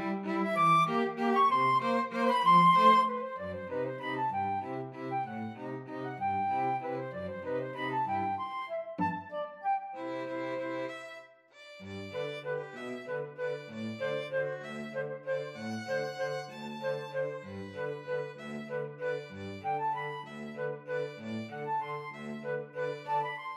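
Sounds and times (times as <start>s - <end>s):
cello: 0.0s - 23.5s
flute: 0.0s - 23.5s
violin: 0.0s - 23.5s.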